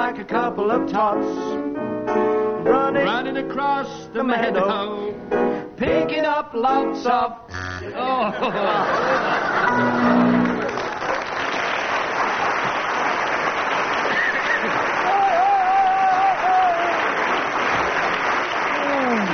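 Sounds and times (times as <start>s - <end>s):
speech: 0.2s - 10.4s
scattered laughter: 8.0s - 10.3s
studio audience applause at a comedy panel show: 8.7s - 19.3s.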